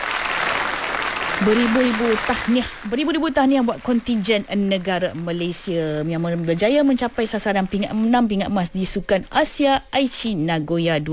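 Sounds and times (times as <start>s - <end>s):
audience applause at a Malaysian Asian Games celebration: 0.0s - 8.4s
speech: 1.4s - 11.1s.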